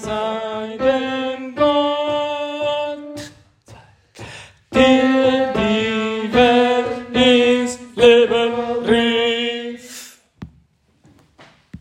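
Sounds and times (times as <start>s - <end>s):
tenor singing: 0.0s - 10.2s.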